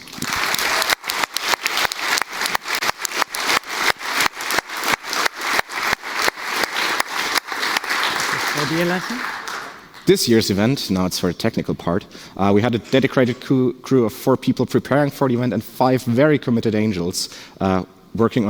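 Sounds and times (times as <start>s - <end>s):
audience applause: 0.0s - 10.1s
speech: 8.7s - 9.3s, 10.1s - 18.4s.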